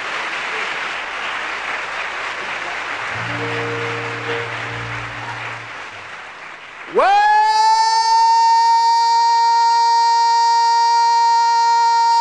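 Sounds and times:
audience applause: 0:00.0 - 0:12.1.

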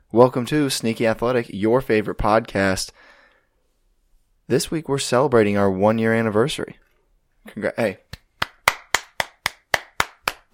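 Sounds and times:
speech: 0:00.1 - 0:03.1, 0:04.5 - 0:06.8, 0:07.4 - 0:08.1
sharp hand claps: 0:08.1 - 0:10.5.

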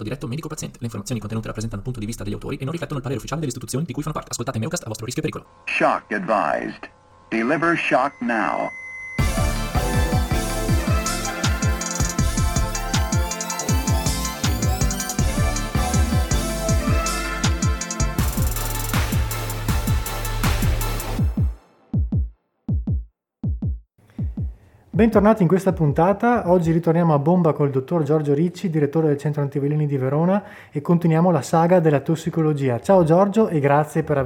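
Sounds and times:
speech: 0:00.0 - 0:08.8, 0:25.0 - 0:34.2
podcast theme jingle of electronic music: 0:08.0 - 0:21.6
bass thumps: 0:09.2 - 0:13.1, 0:13.8 - 0:25.8.

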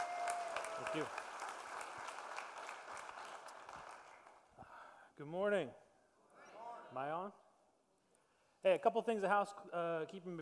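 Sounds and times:
church congregation clapping to welcome a pastor: 0:00.0 - 0:04.6
speech: 0:00.9 - 0:01.2, 0:05.2 - 0:05.8, 0:06.9 - 0:07.4, 0:08.6 - 0:10.4.

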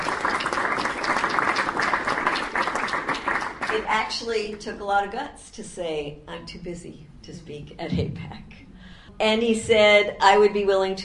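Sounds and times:
audience applause at a political talk: 0:00.0 - 0:03.9
speech: 0:03.8 - 0:08.5, 0:09.2 - 0:11.0.

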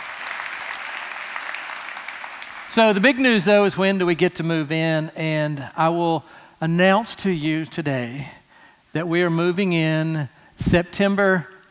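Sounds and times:
crowd applauding: 0:00.0 - 0:03.6
speech: 0:02.7 - 0:11.5.

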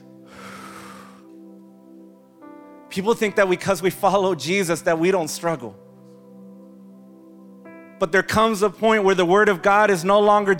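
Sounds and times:
deep breath: 0:00.2 - 0:01.4
speech: 0:02.9 - 0:05.8, 0:08.0 - 0:10.5.

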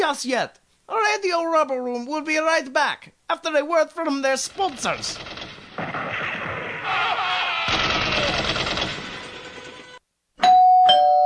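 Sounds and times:
speech: 0:00.1 - 0:05.3
loud rumbling burst of noise: 0:04.4 - 0:09.9
doorbell ringing with two bright chime tones: 0:10.4 - 0:11.2.

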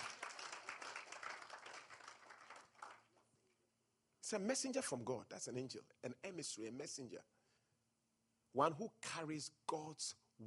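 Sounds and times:
audience clapping: 0:00.0 - 0:03.2
speech: 0:04.3 - 0:07.4, 0:08.5 - 0:10.4.

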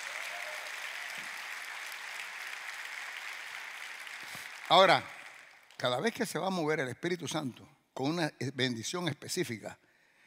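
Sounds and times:
audience applause: 0:00.0 - 0:05.8
speech: 0:04.3 - 0:05.1, 0:05.8 - 0:09.8.

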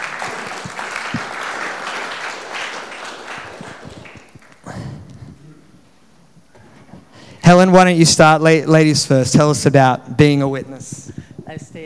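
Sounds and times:
audience applause: 0:00.0 - 0:04.9
speech: 0:07.5 - 0:11.8.

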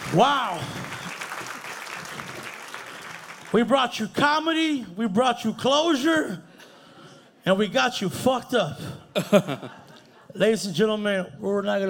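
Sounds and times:
audience applause: 0:00.0 - 0:03.6
speech: 0:00.1 - 0:00.8, 0:03.5 - 0:06.5, 0:07.4 - 0:11.8
laughter: 0:09.1 - 0:10.4.

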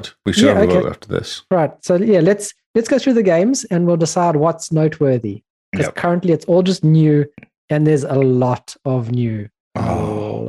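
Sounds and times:
speech: 0:00.0 - 0:10.4
person yawning: 0:09.8 - 0:10.4.

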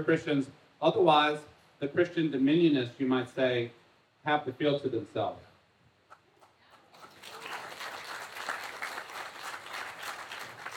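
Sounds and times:
speech: 0:00.0 - 0:05.5
audience applause: 0:06.8 - 0:10.7.

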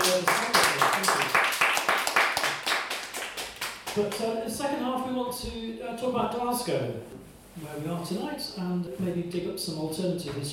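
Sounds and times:
audience applause: 0:00.0 - 0:04.0
speech: 0:04.0 - 0:10.5.

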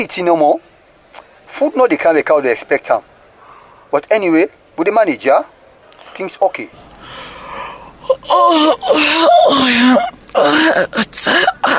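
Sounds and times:
speech: 0:00.0 - 0:00.7, 0:01.6 - 0:03.1, 0:03.9 - 0:05.6, 0:06.2 - 0:07.3, 0:08.1 - 0:11.7
person yawning: 0:07.0 - 0:11.7.

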